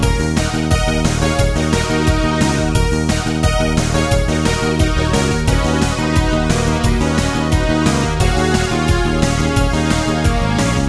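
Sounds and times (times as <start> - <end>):
16-bit game music: 0.0 - 10.8.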